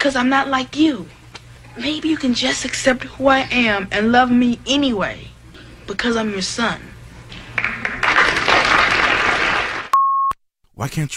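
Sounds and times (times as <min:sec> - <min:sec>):
speech: 0:00.0 - 0:01.2, 0:01.8 - 0:05.3, 0:05.9 - 0:06.9, 0:10.8 - 0:11.1
studio audience clapping: 0:07.3 - 0:09.9.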